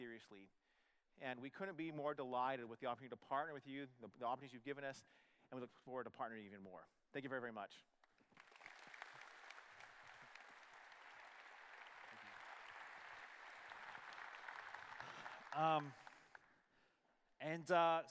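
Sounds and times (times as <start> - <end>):
speech: 0.0 - 0.6, 1.2 - 7.9, 15.6 - 16.0, 17.4 - 18.0
audience applause: 8.3 - 16.4.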